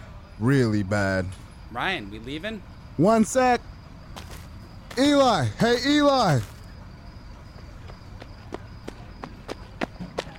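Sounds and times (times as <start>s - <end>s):
speech: 0.4s - 4.3s, 5.0s - 6.5s
running footsteps of a young kid coming up: 7.5s - 10.3s.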